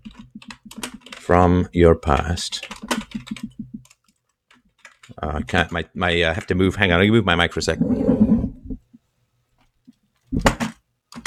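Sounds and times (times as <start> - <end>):
keyboard typing: 0.0 - 1.4, 2.0 - 5.2, 10.4 - 11.2
speech: 1.3 - 2.8, 5.2 - 8.3.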